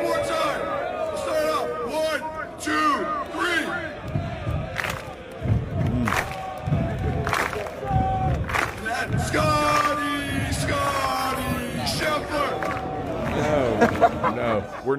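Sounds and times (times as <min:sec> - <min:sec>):
large crowd chanting and shouting in unison: 0:00.0 - 0:14.9
feet stamping on bleachers: 0:03.8 - 0:13.4
laughter: 0:13.2 - 0:14.9.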